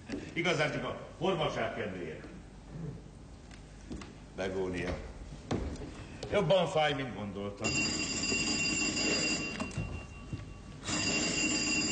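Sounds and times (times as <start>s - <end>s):
speech: 0.4s - 3.0s, 3.9s - 5.1s, 6.3s - 8.4s
telephone ringing: 7.6s - 11.8s.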